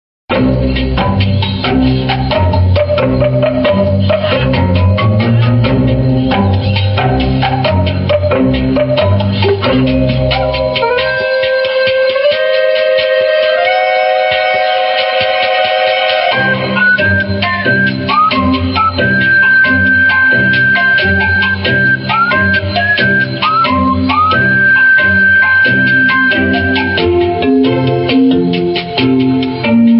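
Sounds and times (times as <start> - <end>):
jungle rhythm music: 0.3 - 29.9.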